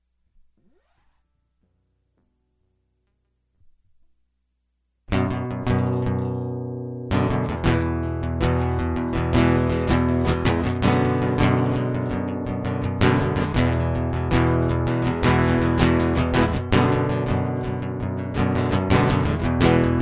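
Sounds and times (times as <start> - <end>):
guitar prelude: 5.1 - 20.0.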